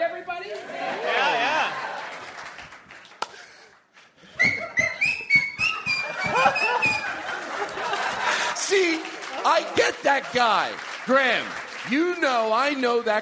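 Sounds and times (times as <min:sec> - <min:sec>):
comedy show crowd noise and laughter: 0:00.5 - 0:02.7, 0:04.4 - 0:11.2
sharp whistle from a comedy show audience: 0:04.4 - 0:07.0
speech: 0:10.0 - 0:13.2.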